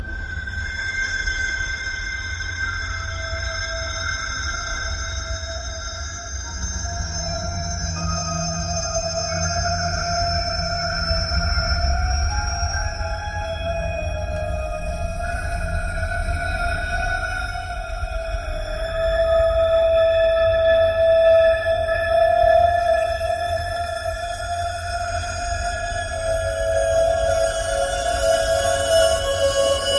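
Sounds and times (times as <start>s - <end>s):
haunting music: 0.0s - 29.9s.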